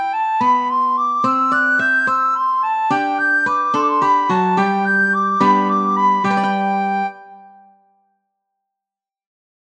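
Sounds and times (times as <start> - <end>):
soprano singing a fast andante: 0.2 - 7.2.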